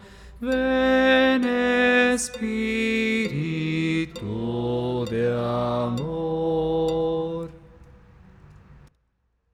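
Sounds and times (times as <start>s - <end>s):
bass voice singing: 0.4s - 7.7s.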